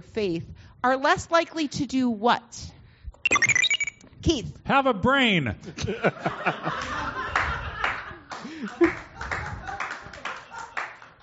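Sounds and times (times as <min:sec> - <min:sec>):
speech: 0:00.1 - 0:02.8, 0:04.2 - 0:07.2
scattered laughter: 0:05.6 - 0:11.2
audience clapping: 0:06.8 - 0:11.2.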